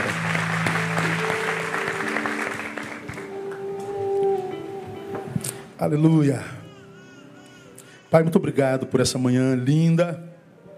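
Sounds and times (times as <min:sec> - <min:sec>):
audience applauding: 0:00.0 - 0:04.4
speech: 0:05.8 - 0:06.6, 0:08.1 - 0:10.3.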